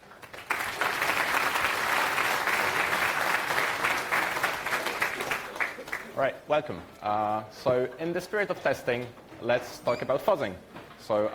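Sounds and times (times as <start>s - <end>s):
audience applause: 0.0s - 6.2s
speech: 6.2s - 11.3s.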